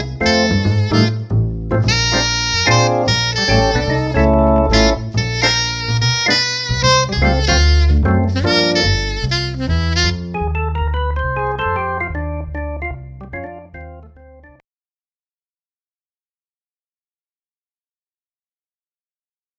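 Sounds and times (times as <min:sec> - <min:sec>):
jazz saxophone: 0:00.0 - 0:12.9
jazz keyboard: 0:00.0 - 0:14.6.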